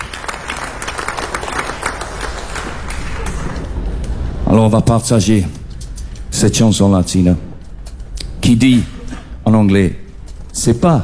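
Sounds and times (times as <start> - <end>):
crowd applause: 0.0 - 4.8
speech: 4.6 - 5.6, 6.4 - 7.5, 8.4 - 8.9, 9.5 - 10.0, 10.6 - 11.0.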